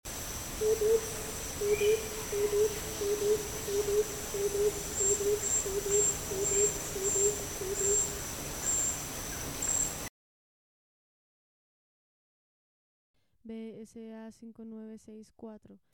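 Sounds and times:
gilded barbet: 0.6 - 10.1.

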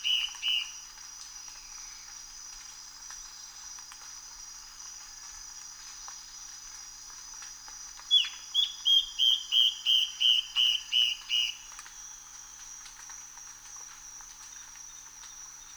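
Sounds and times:
Yellow-browed antbird calling whistled notes: 8.1 - 11.6.

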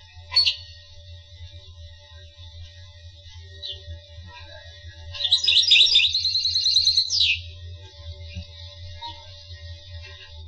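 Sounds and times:
finch singing: 5.2 - 7.5.

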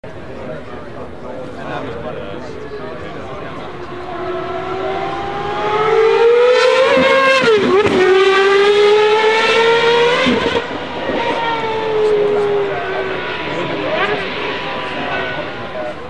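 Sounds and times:
Gordon Murray car exhaust: 3.2 - 16.0.

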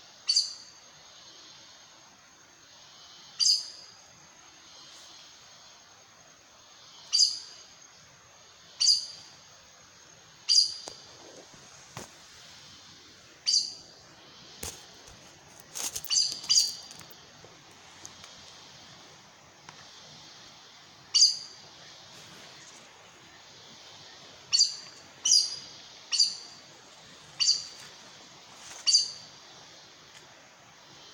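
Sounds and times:
steady hiss: 0.0 - 31.1
aracari high squeaky calls: 16.0 - 17.0, 21.1 - 21.6, 24.5 - 26.6, 27.3 - 27.8, 28.7 - 29.4.

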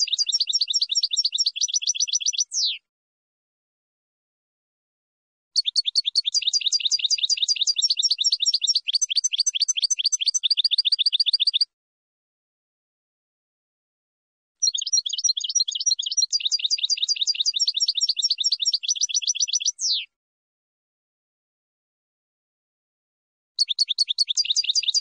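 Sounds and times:
finch song: 0.0 - 2.9, 5.6 - 11.7, 14.6 - 20.2, 23.6 - 24.9.

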